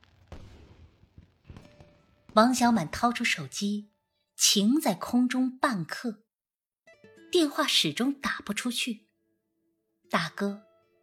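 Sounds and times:
Spring Festival fireworks booming: 0.0 - 3.2
speech: 2.4 - 6.2, 7.3 - 9.1, 10.1 - 10.7.

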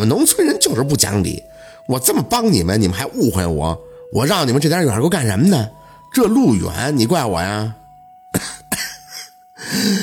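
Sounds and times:
speech: 0.0 - 8.6, 9.6 - 10.0
man coughing: 8.3 - 10.0.

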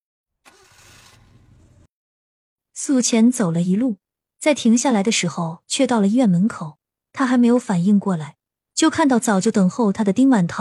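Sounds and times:
car engine starting: 0.4 - 1.9
speech: 2.8 - 10.5.

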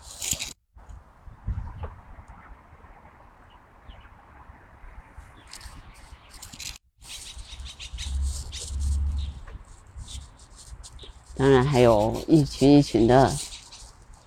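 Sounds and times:
light-vented bulbul and blackbird chirping and warbling: 1.6 - 14.2
steady low rumble: 7.9 - 10.3
speech: 11.4 - 13.4.

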